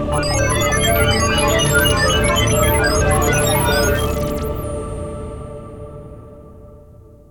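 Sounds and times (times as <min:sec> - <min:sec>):
startup sound: 0:00.1 - 0:05.4.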